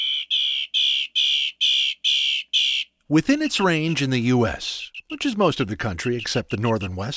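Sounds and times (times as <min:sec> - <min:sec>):
northern mockingbird singing harsh notes: 0:00.0 - 0:07.1
speech: 0:03.1 - 0:07.1.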